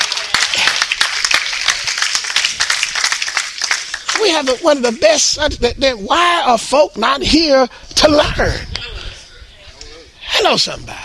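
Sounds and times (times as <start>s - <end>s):
audience clapping hands in praise: 0.0s - 4.9s
speech: 4.2s - 8.7s, 10.4s - 11.0s.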